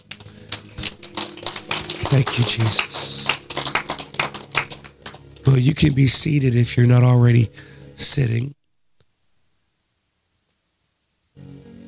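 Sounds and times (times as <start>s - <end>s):
crowd clapping hands: 0.0s - 6.7s
speech: 2.1s - 3.0s, 5.5s - 8.6s.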